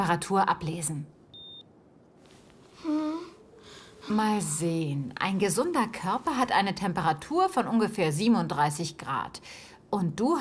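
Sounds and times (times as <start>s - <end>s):
speech: 0.0s - 1.2s, 4.1s - 10.3s
ear thermometer beeping when reading is done: 1.3s - 1.7s.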